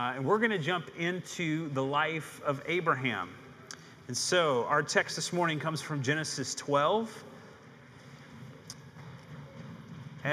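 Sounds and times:
speech: 0:00.0 - 0:03.4, 0:04.1 - 0:07.3
children stomping footsteps leaving room: 0:07.7 - 0:10.3.

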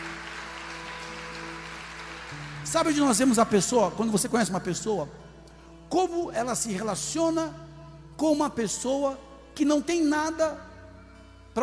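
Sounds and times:
church congregation applauding: 0:00.0 - 0:03.7
speech: 0:02.7 - 0:05.3, 0:05.9 - 0:07.6, 0:08.2 - 0:10.7.

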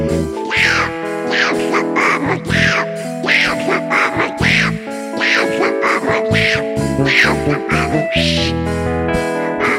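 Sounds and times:
person imitating Donald Duck quacking: 0:00.4 - 0:08.6, 0:09.6 - 0:09.7.

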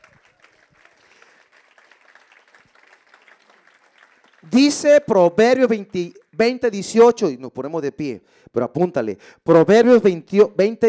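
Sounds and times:
audience applauding: 0:00.0 - 0:04.9
speech: 0:04.4 - 0:10.8.

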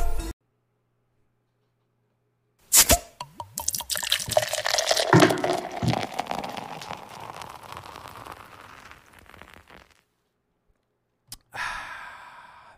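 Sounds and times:
beverage pouring: 0:03.1 - 0:10.0
sip and breathy exhale: 0:04.1 - 0:10.0.

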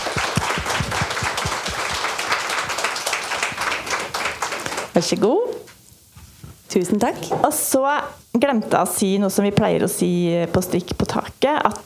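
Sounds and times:
live audience applauding: 0:00.0 - 0:05.0
speech: 0:05.0 - 0:05.5, 0:06.8 - 0:11.8.

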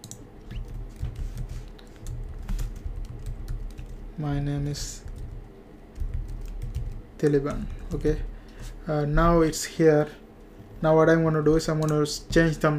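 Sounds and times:
typing HTML code on a computer keyboard: 0:00.0 - 0:04.0, 0:04.6 - 0:08.2, 0:11.6 - 0:12.7
speech: 0:04.2 - 0:05.1, 0:07.2 - 0:10.2, 0:10.8 - 0:12.7.

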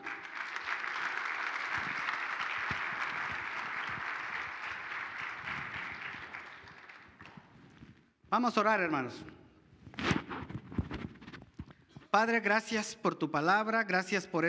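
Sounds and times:
audience applause: 0:00.0 - 0:07.5
speech: 0:08.3 - 0:09.4, 0:12.2 - 0:14.4.

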